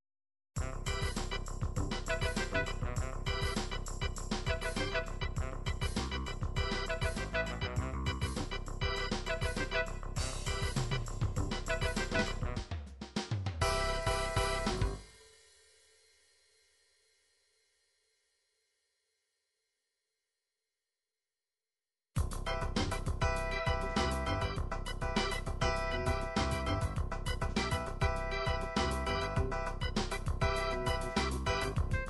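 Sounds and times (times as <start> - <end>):
r and b brass: 0.6 - 12.9, 13.6 - 15.1, 22.2 - 32.0.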